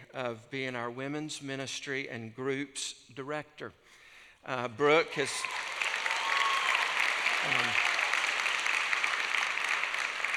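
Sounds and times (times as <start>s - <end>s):
speech: 0.2s - 5.7s, 7.4s - 7.8s
audience clapping: 5.1s - 10.3s.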